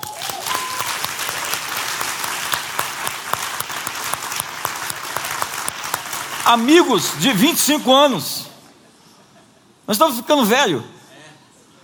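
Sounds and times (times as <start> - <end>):
crowd applause: 0.0 - 7.9
speech: 6.5 - 8.5, 9.9 - 11.0.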